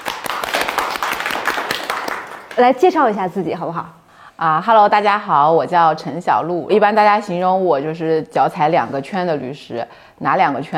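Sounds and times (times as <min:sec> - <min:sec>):
audience applause welcoming a guest lawyer onto a Chinese talk show: 0:00.0 - 0:02.6
speech: 0:02.6 - 0:10.7.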